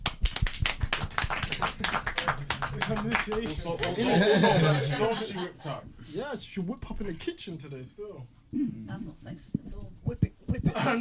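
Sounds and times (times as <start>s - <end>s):
hand clapping: 0.0s - 4.2s
laughter: 1.5s - 5.8s
speech: 2.8s - 11.0s.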